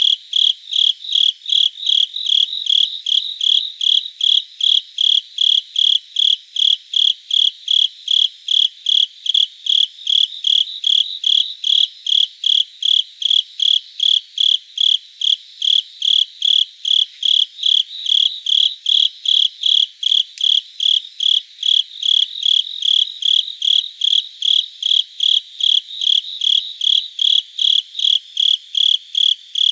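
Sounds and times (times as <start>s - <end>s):
Velarifictorus micado cricket chirping: 0.0s - 29.6s.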